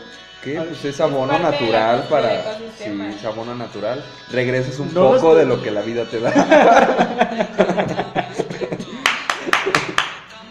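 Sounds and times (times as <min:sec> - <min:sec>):
speech: 0:00.4 - 0:08.0
people laughing and chatting: 0:00.6 - 0:10.0
short burst of applause: 0:08.8 - 0:10.4.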